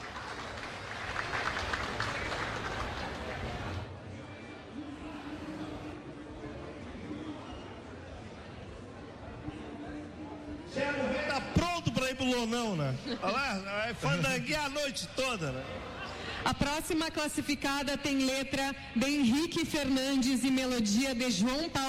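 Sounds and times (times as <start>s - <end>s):
crowd applause: 0.0s - 3.9s
faint voices murmuring: 0.0s - 11.7s, 12.6s - 16.6s
speech: 12.2s - 21.8s.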